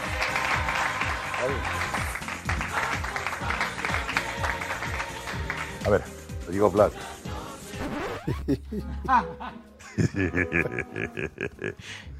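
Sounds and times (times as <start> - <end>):
applause: 0.0 - 6.0
speech: 1.4 - 2.0, 5.8 - 7.2, 8.2 - 12.1
laughter: 8.3 - 12.0.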